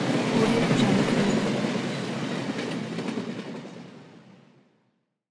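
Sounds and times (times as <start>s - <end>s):
train passing by: 0.1s - 3.2s.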